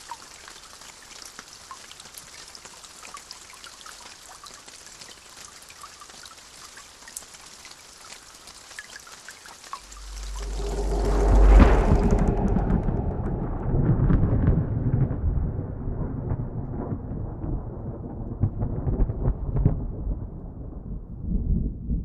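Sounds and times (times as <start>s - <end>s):
rain: 0.0s - 21.7s
thunder: 9.8s - 22.0s.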